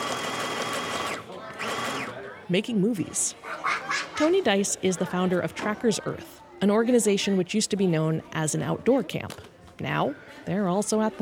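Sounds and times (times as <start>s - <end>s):
sewing machine running: 0.0s - 2.1s
speech: 2.5s - 11.2s.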